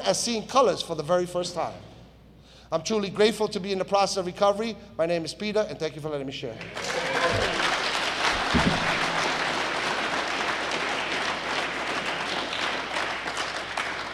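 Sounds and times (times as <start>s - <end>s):
speech: 0.0s - 1.9s, 2.7s - 7.6s
audience applause: 6.6s - 14.1s.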